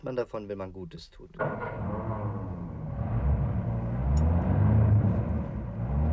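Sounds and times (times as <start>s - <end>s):
speech: 0.0s - 2.1s
car engine stalling and struggling to start: 1.4s - 6.1s.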